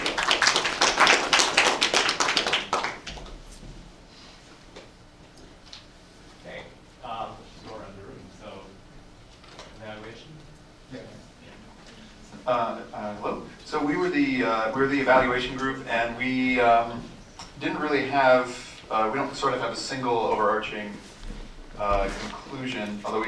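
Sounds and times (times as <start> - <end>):
audience applause: 0.0 - 3.4
people talking quietly: 6.4 - 23.2
speech: 14.7 - 17.0, 17.6 - 21.1, 21.8 - 23.2.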